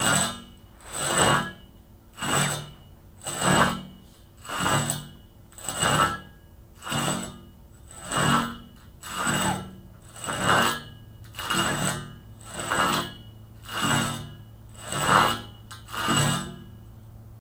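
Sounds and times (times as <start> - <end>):
pipe dragging: 0.0 - 16.9.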